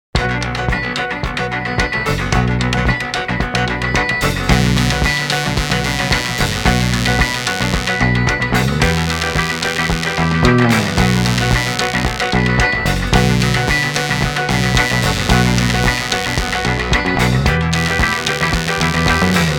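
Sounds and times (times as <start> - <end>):
instrumental music: 0.2 - 19.5.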